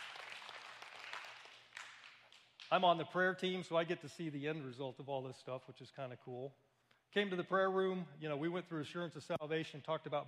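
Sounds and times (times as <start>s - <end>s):
audience clapping: 0.0s - 2.9s
speech: 2.7s - 10.2s.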